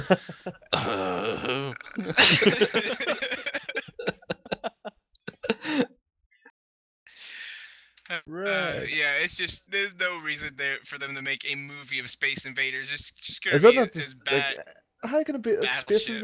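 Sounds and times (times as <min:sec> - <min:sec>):
speech: 0:00.1 - 0:03.4, 0:08.8 - 0:16.2
laughter: 0:02.0 - 0:05.6
gasping breaths: 0:02.1 - 0:03.8
person coughing rough throaty coughs: 0:02.2 - 0:03.8.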